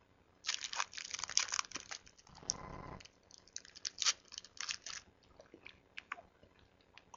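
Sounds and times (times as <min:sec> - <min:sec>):
Snickers bar wrapper crinkling: 0:00.4 - 0:05.1
person chewing a Snickers bar: 0:00.5 - 0:06.2.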